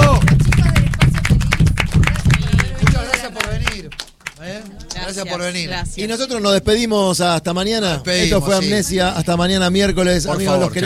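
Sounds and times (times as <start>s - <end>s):
applause: 0.0s - 5.0s
speech: 5.1s - 10.8s.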